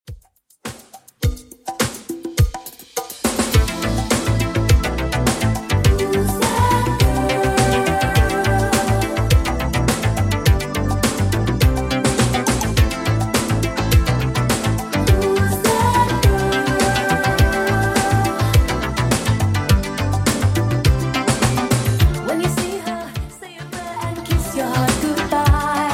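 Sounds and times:
1980s drum machine beat at 104 BPM: 0.0s - 25.9s.

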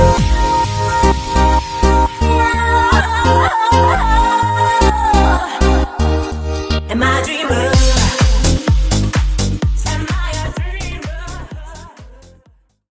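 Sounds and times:
disco funk remix: 0.0s - 12.4s.

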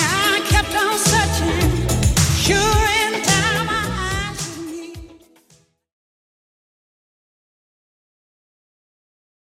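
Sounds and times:
80s beat: 0.0s - 5.4s.

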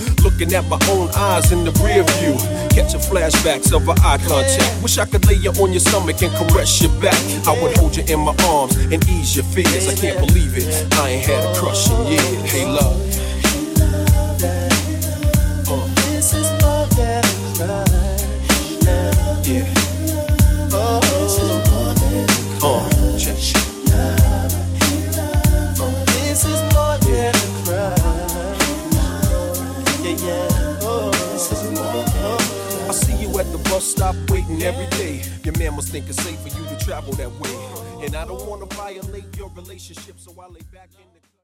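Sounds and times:
old hip hop beat: 0.0s - 41.1s.

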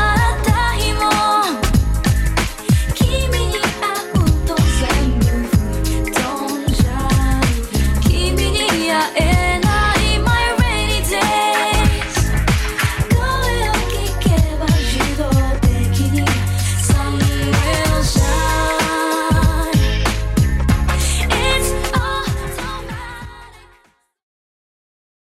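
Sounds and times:
90s drum loop at 95 bpm: 0.0s - 23.5s.

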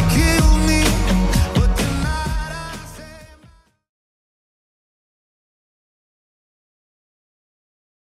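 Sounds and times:
top 40 pop dance remix at 128 bpm: 0.0s - 3.7s.

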